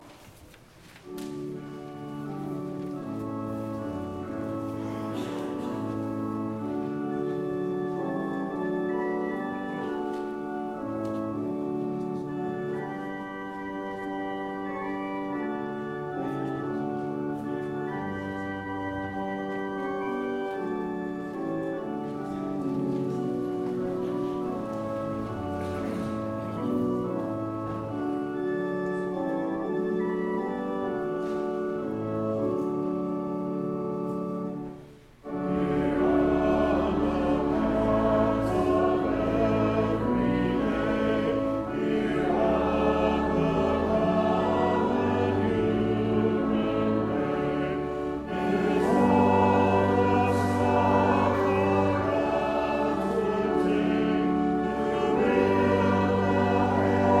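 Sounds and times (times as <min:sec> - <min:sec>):
hymn: 0:00.0 - 0:57.1.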